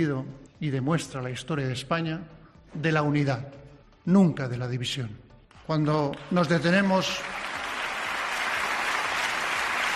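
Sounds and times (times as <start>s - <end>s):
speech: 0.0s - 7.4s
sustained applause from a large crowd: 6.1s - 9.9s.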